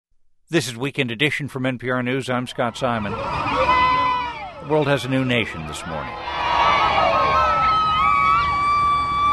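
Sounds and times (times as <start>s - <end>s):
speech: 0.5s - 3.6s, 4.7s - 7.1s
crowd cheering celebrating South Sudan's independence: 2.4s - 9.3s
shrill sustained tones: 2.7s - 9.3s.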